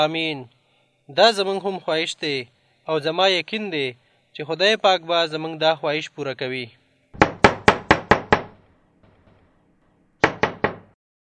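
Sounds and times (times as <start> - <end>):
speech: 0.0 - 6.8
knocking on a door: 7.2 - 8.6, 10.2 - 11.0.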